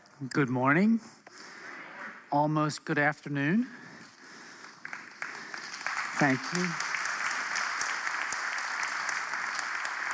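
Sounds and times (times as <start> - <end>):
speech: 0.2 - 1.5, 2.3 - 3.8, 6.2 - 6.8
audience clapping: 4.0 - 10.1.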